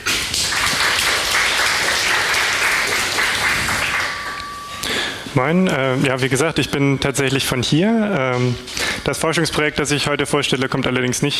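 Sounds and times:
audience applause: 0.0s - 4.4s
speech: 5.3s - 11.3s.

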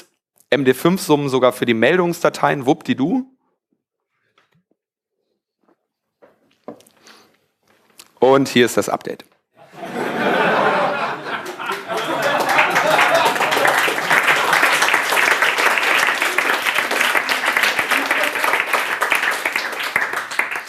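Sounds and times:
speech: 0.5s - 3.3s, 8.2s - 9.3s
scattered laughs: 9.6s - 14.1s
crowd applause: 9.6s - 20.6s.

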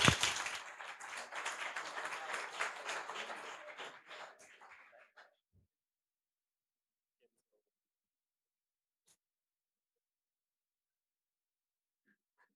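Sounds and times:
audience applause: 0.0s - 5.4s.

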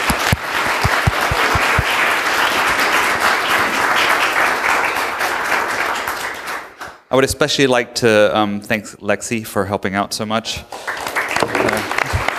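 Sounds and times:
audience applause: 0.0s - 7.0s, 10.7s - 12.3s
speech: 7.1s - 11.0s.

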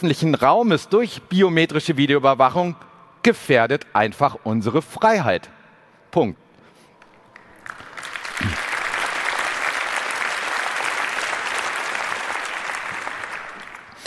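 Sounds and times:
speech: 0.0s - 6.4s
audience applause: 7.3s - 14.0s.

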